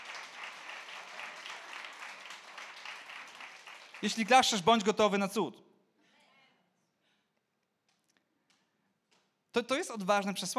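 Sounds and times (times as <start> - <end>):
crowd applauding: 0.0 - 4.8
speech: 4.0 - 5.7, 9.6 - 10.5.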